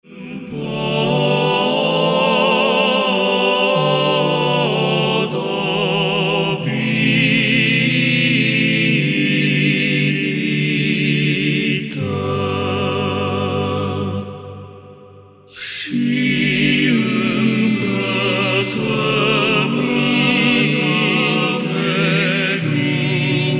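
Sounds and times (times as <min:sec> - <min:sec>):
vocal quartet singing: 0:00.0 - 0:23.5.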